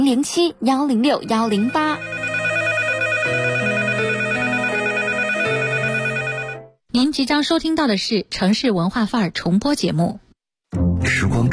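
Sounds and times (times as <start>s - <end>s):
speech: 0.0s - 2.0s, 7.0s - 10.2s, 11.0s - 11.5s
electronic telephone ringtone melody: 1.3s - 6.7s.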